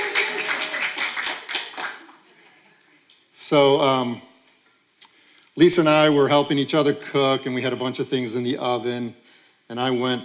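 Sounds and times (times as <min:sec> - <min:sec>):
small group clapping for a birthday: 0:00.0 - 0:03.2
speech: 0:03.5 - 0:04.3, 0:05.6 - 0:10.2.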